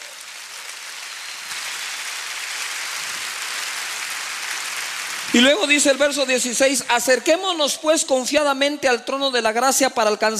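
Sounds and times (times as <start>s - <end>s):
audience applause: 0.0s - 7.2s
speech: 5.3s - 10.3s.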